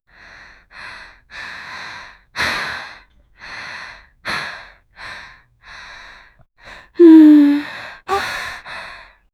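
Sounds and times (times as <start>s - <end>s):
teenage girl vocalizing with mouth closed: 7.0s - 8.4s.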